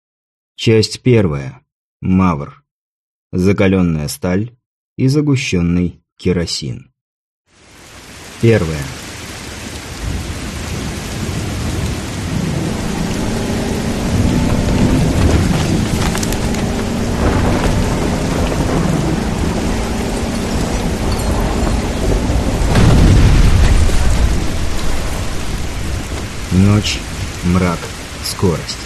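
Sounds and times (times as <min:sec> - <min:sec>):
speech: 0:00.6 - 0:02.6, 0:03.3 - 0:06.9, 0:08.4 - 0:09.0, 0:27.6 - 0:28.8
heavy rain at night: 0:07.5 - 0:28.8
rolling thunder: 0:09.7 - 0:28.2.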